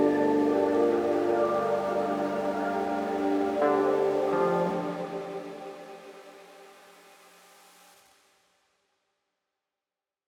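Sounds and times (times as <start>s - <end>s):
evening chill synth pads: 0.0s - 6.8s.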